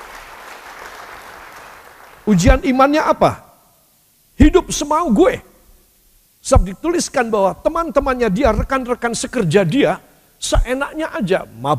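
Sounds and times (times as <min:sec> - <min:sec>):
audience applause: 0:00.0 - 0:02.3
speech: 0:02.3 - 0:03.4, 0:04.4 - 0:05.5, 0:06.4 - 0:11.7.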